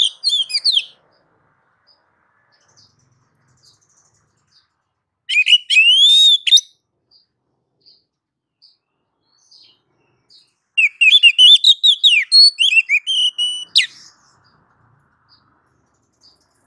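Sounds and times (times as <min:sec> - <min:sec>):
female oriental magpie-robin calling to a male: 0:00.0 - 0:01.0, 0:05.3 - 0:06.8, 0:10.8 - 0:14.1.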